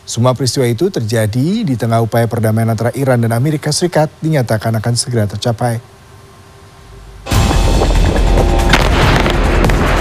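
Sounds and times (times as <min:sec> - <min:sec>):
speech: 0:00.1 - 0:06.0
large explosion in South Lebanon: 0:07.4 - 0:09.9.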